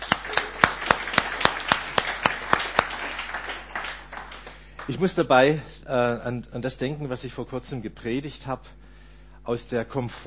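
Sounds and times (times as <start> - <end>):
audience applause: 0.0 - 5.0
speech: 4.9 - 8.8, 9.4 - 10.2.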